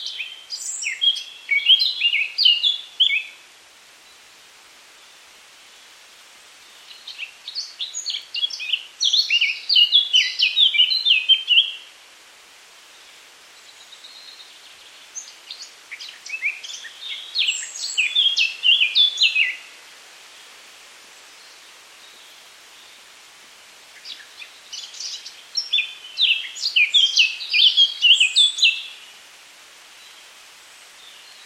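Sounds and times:
Eurasian Blackcap singing: 0.0s - 3.4s, 6.7s - 11.9s, 13.6s - 19.7s, 24.0s - 29.0s.

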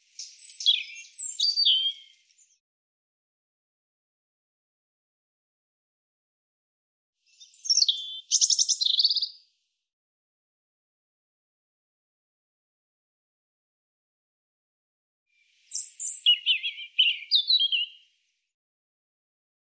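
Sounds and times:
European robin singing: 0.0s - 2.6s, 7.3s - 9.4s, 15.4s - 18.2s.

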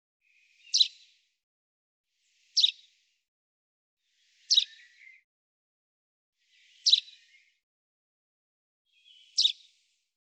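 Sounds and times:
common chaffinch calling: 0.6s - 1.0s, 2.6s - 2.9s, 4.3s - 5.0s, 6.6s - 7.3s, 9.0s - 9.6s.

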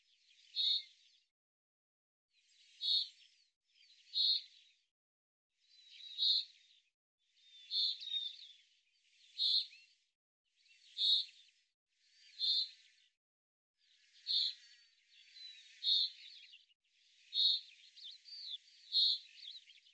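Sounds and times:
bird chirps: 0.3s - 1.0s, 2.7s - 4.6s, 5.7s - 6.6s, 7.4s - 8.6s, 9.2s - 9.9s, 10.7s - 11.5s, 12.1s - 13.0s, 14.0s - 19.9s.

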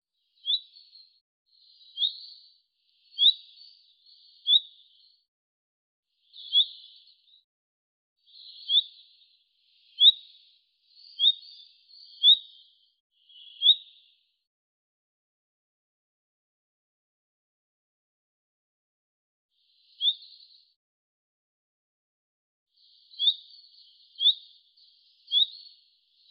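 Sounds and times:
bird giving short high upward-sweeping chirps: 0.2s - 5.3s, 6.2s - 7.5s, 8.2s - 14.4s, 19.6s - 20.8s, 22.8s - 26.3s.

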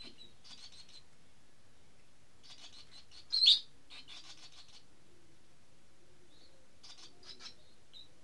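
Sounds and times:
bird calls as high chirps and buzzy bursts: 0.0s - 1.1s, 2.4s - 4.8s, 6.3s - 8.1s.

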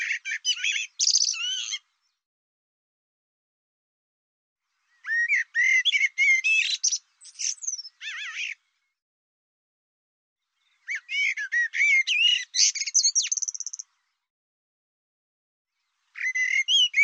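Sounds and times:
bird song: 0.0s - 2.2s, 4.6s - 9.0s, 10.4s - 14.3s, 15.7s - 17.0s.

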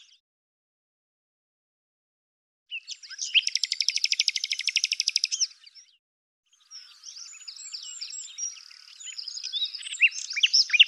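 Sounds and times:
bird singing rapid chirps, buzzy trills and whistled notes: 2.7s - 10.8s.

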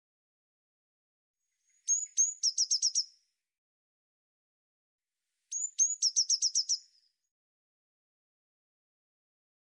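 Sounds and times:
Eurasian blue tit thin high whistled notes: 1.5s - 3.2s, 5.5s - 7.2s.

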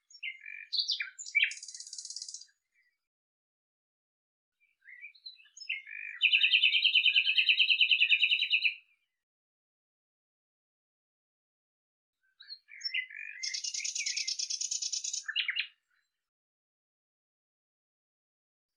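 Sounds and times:
Common nightingale song with chirps and rattling series: 0.1s - 2.9s, 4.8s - 8.8s, 12.3s - 15.8s.

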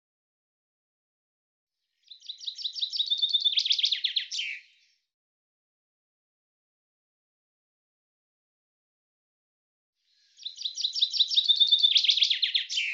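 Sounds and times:
common chaffinch song: 2.0s - 5.1s, 10.1s - 12.9s.

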